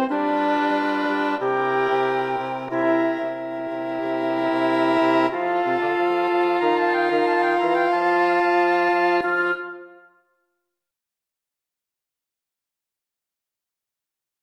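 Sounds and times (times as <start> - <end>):
jazz quintet playing a Christmas carol: 0.0 - 10.0.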